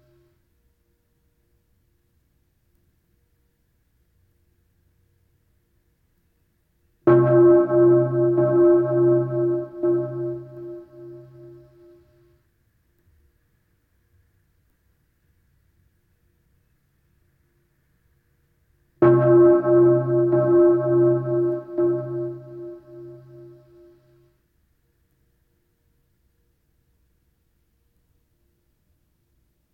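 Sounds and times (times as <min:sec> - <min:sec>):
bells ringing: 0:07.1 - 0:11.7, 0:19.0 - 0:23.8.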